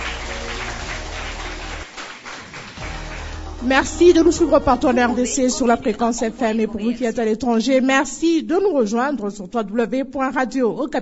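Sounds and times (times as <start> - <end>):
audience applause: 0.0 - 5.3
speech: 3.6 - 11.0.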